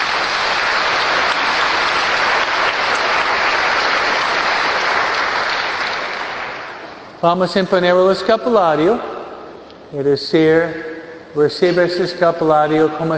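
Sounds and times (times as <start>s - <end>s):
audience applause: 0.0s - 7.1s
speech: 7.2s - 9.1s, 9.9s - 13.1s.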